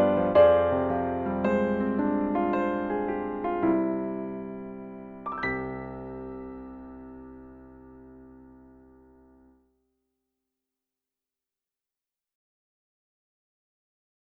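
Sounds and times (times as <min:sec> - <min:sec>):
piano arrangement: 0:00.0 - 0:09.6.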